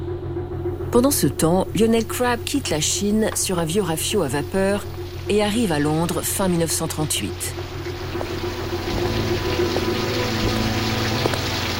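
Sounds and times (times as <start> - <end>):
low steady droning hum: 0.0 - 11.7
speech: 0.9 - 7.8
heavy pouring rain: 7.6 - 11.7.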